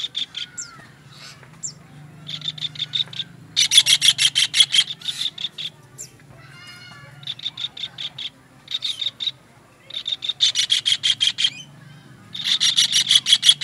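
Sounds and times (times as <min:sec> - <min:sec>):
kingfisher calling: 0:00.0 - 0:13.6.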